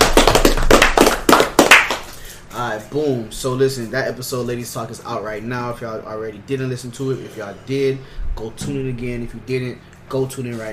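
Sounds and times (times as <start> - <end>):
hand clapping from a few people: 0.0 - 2.2
speech: 2.8 - 10.7.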